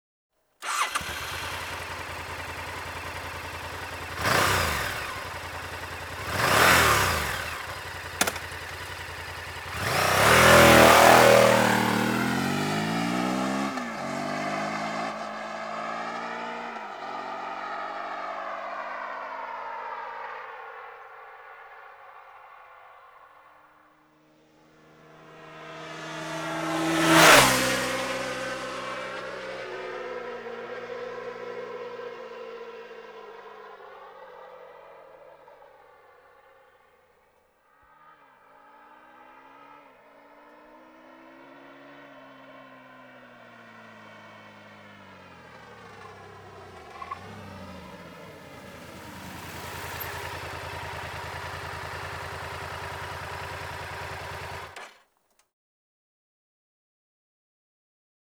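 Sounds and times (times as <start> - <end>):
Honda XL 1000 V Varadero motorcycle engine: 0.6 - 37.0, 37.9 - 55.0.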